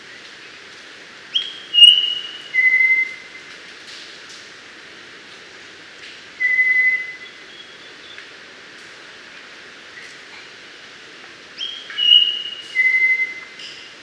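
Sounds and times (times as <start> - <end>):
mangrove robin Melanodryas pulverulenta whistled notes: 1.4 - 3.2, 6.4 - 7.9, 11.6 - 13.8.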